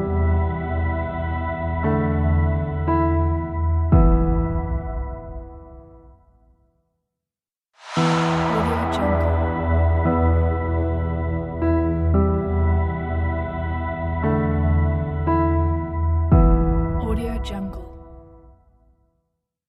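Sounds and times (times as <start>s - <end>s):
atmospheric piano soundscape: 0.0s - 6.3s, 7.8s - 18.9s.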